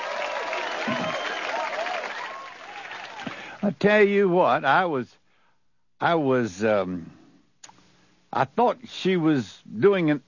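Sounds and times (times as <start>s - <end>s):
round of applause: 0.0s - 3.6s
speech: 3.6s - 5.2s, 6.0s - 7.2s, 8.3s - 10.2s.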